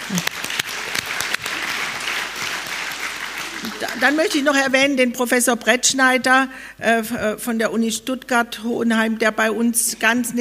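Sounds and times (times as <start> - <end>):
crowd clapping: 0.0 - 4.8
speech: 0.1 - 0.5, 3.7 - 10.4.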